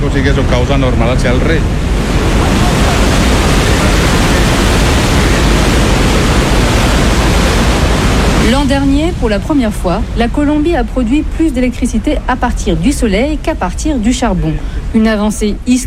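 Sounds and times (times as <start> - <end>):
speech: 0.1 - 2.7, 8.5 - 15.8
water rushing from turbine into outlet basin: 1.7 - 10.0.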